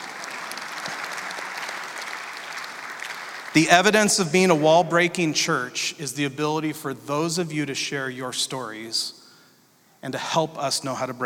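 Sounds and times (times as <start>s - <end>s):
church audience clapping: 0.0s - 4.8s
speech: 3.6s - 9.2s, 10.0s - 11.2s.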